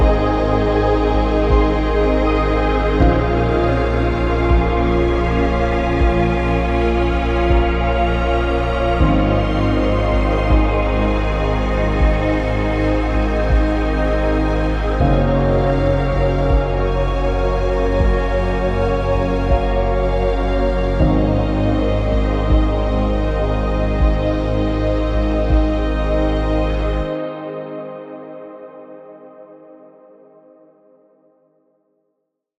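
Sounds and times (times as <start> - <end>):
ambient drone: 0.0 - 28.5.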